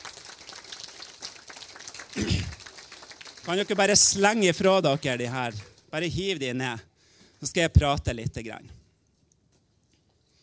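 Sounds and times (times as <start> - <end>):
audience clapping: 0.0 - 5.9
speech: 3.5 - 8.8.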